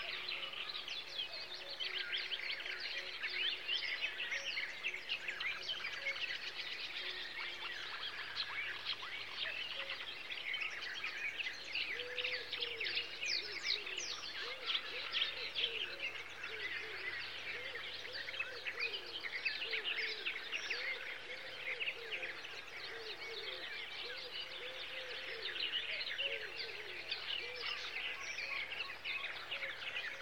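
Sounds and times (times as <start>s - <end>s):
birds in summer: 0.0s - 30.1s.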